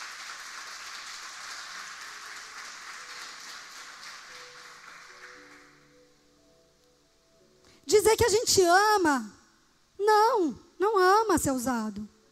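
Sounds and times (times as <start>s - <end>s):
audience applause: 0.0s - 5.9s
speech: 7.9s - 9.4s, 10.1s - 12.1s.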